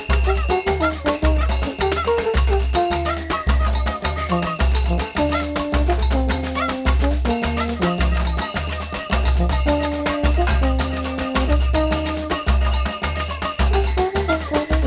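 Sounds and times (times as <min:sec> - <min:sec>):
batucada Brazilian rhythm on a drumset: 0:00.0 - 0:14.8
trombone: 0:00.0 - 0:14.8.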